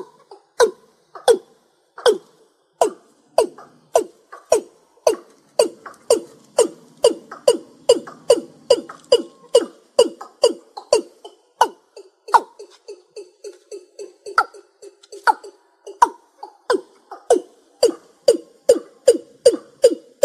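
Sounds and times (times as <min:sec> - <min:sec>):
rail calling: 0:00.0 - 0:20.2.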